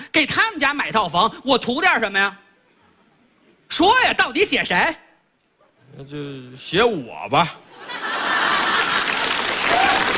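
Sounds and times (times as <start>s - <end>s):
speech: 0.2s - 2.4s, 3.7s - 5.0s, 5.9s - 8.0s
laughter: 7.7s - 10.1s
audience clapping on a radio comedy show: 8.3s - 10.1s.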